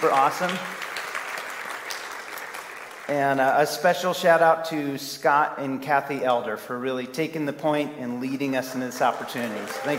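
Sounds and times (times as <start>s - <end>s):
speech: 0.0s - 0.9s, 3.1s - 9.9s
audience round of applause: 0.0s - 3.1s, 8.9s - 9.9s.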